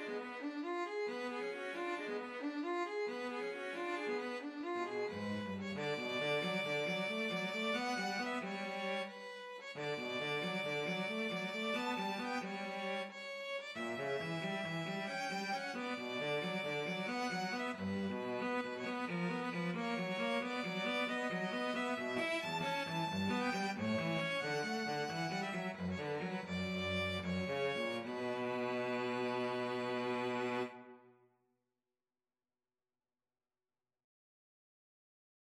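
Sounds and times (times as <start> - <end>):
cello in a duet with violin: 0.0 - 31.1
violin in a duet with cello: 0.0 - 31.1.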